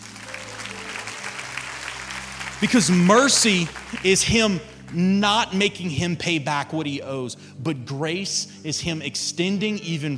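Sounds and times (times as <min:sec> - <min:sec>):
crowd clapping: 0:00.0 - 0:05.6
speech: 0:02.6 - 0:10.1.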